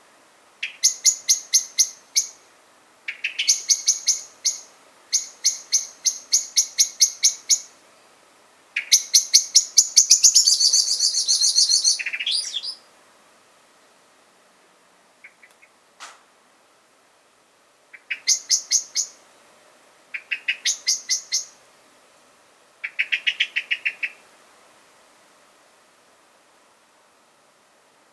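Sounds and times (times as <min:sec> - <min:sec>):
common blackbird chinking calls: 0:00.6 - 0:02.5, 0:03.1 - 0:07.8, 0:08.8 - 0:12.9, 0:15.2 - 0:15.8, 0:17.9 - 0:19.2, 0:20.1 - 0:21.6, 0:22.8 - 0:24.2.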